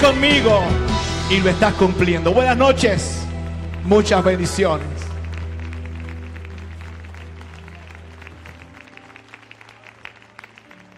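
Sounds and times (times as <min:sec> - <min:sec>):
speech: 0:00.0 - 0:05.0
audience applause: 0:03.4 - 0:10.9.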